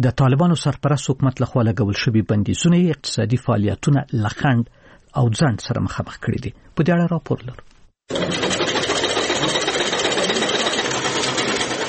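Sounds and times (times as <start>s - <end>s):
speech: 0.0s - 8.8s
sewing machines running in a tailoring workshop in Kandahar: 8.1s - 11.8s.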